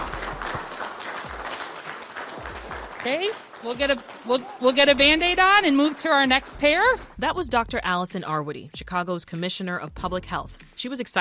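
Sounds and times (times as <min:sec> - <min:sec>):
small group applauding: 0:00.0 - 0:07.2
speech: 0:03.0 - 0:11.1.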